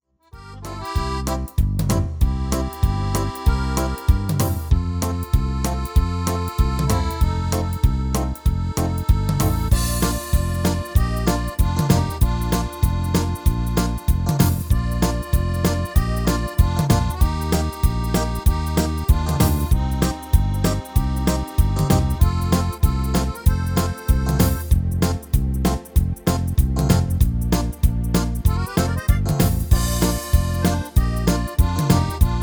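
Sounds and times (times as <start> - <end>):
MIDI music: 0.3 - 32.4.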